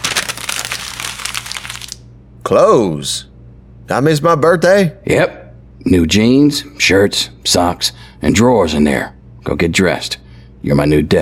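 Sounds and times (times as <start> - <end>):
paper crinkling and tearing as a package is opened: 0.0 - 2.0
speech: 2.5 - 3.3, 3.9 - 11.2.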